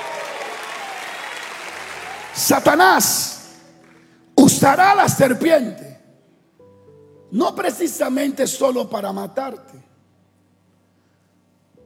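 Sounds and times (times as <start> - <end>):
crowd clapping in a church service: 0.0 - 4.2
speech: 2.4 - 3.4, 4.6 - 5.9, 7.3 - 9.9.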